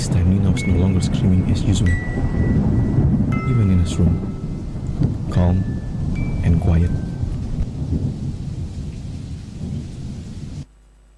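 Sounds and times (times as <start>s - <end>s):
thunderstorm rain: 0.0s - 10.7s
speech: 0.6s - 4.4s, 5.0s - 5.8s, 6.4s - 7.1s, 7.9s - 8.2s
thunder from a thunderstorm: 1.9s - 10.7s.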